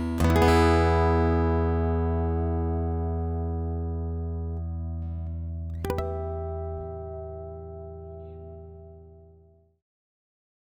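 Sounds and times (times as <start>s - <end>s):
direct strumming on acoustics orchestra model: 0.0s - 9.2s.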